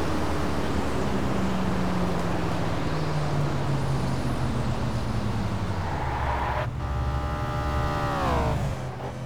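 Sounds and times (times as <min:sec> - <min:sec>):
Lexus LS 600h L car: 0:00.0 - 0:09.2.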